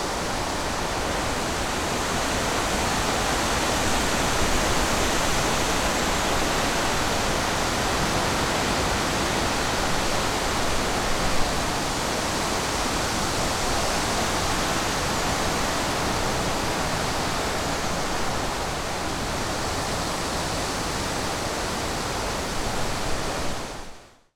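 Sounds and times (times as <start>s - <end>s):
wind in a forest: 0.0s - 24.3s.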